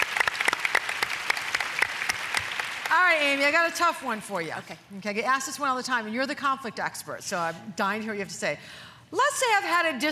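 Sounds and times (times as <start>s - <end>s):
audience applause: 0.0s - 3.0s
speech: 2.9s - 10.0s.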